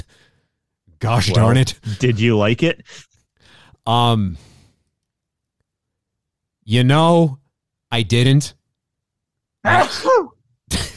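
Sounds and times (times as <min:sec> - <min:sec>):
speech: 0:01.0 - 0:03.1, 0:03.9 - 0:04.5, 0:06.7 - 0:08.6, 0:09.6 - 0:10.9
person gagging and retching: 0:09.7 - 0:10.3.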